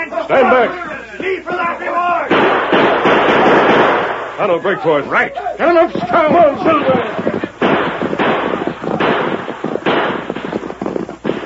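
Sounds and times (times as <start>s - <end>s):
speech: 0.3s - 2.4s, 4.4s - 7.2s
gunshots in a Lone Ranger western radio drama: 1.6s - 4.6s, 5.6s - 11.4s.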